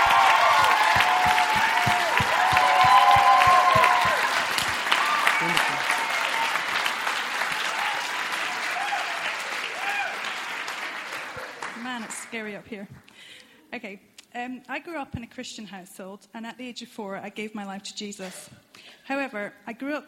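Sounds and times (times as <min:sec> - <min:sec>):
audience applause: 0:00.0 - 0:12.3
speech: 0:12.6 - 0:20.0.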